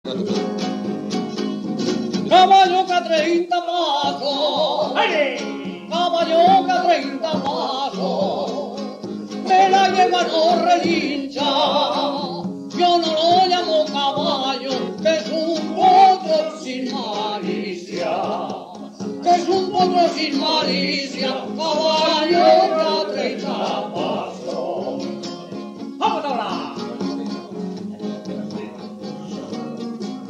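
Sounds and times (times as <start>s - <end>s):
solo jota music: 0.0s - 30.2s.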